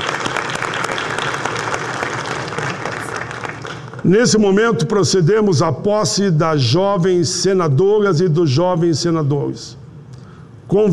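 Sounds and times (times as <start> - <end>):
applause: 0.0 - 4.1
speech: 4.0 - 9.8, 10.7 - 10.9.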